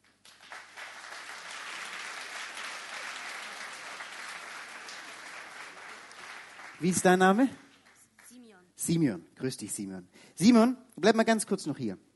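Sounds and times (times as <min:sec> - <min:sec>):
audience applause: 0:00.0 - 0:08.0
speech: 0:06.8 - 0:07.6, 0:08.8 - 0:12.1.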